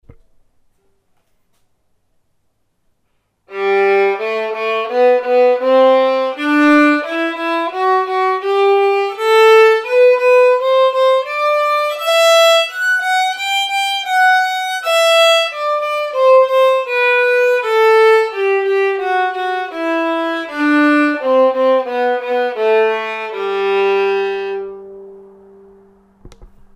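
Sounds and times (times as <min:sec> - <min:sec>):
scales and rhythms in G: 0:03.5 - 0:26.2.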